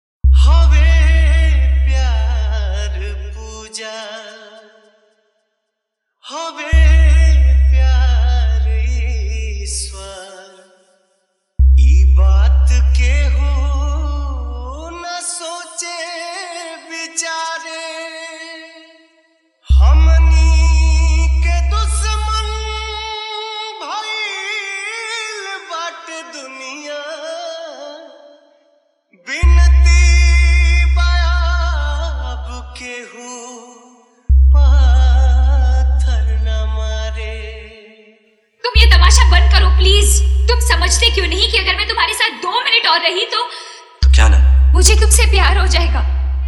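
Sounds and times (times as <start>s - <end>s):
hard jhan jhan bass dj song: 0.3s - 3.6s, 6.7s - 10.1s, 11.6s - 14.8s, 19.7s - 23.1s, 29.4s - 32.8s, 34.3s - 37.4s, 38.7s - 42.4s, 44.0s - 46.4s.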